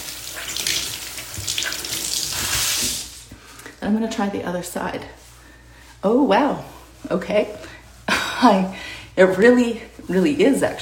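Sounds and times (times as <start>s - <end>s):
running tap water pouring over a scrub brush being rinsed: 0.0s - 3.2s
speech: 3.8s - 5.2s, 6.0s - 7.6s, 8.4s - 10.8s.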